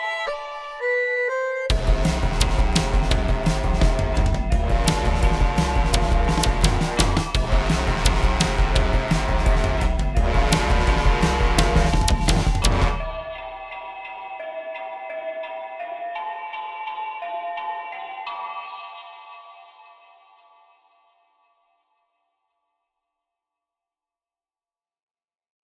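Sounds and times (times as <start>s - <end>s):
Christmas MIDI track: 0.0s - 20.4s.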